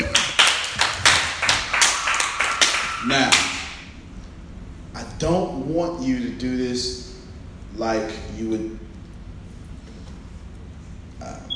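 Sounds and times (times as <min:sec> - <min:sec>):
people clapping: 0:00.0 - 0:03.8
speech: 0:05.2 - 0:07.1, 0:07.8 - 0:08.8.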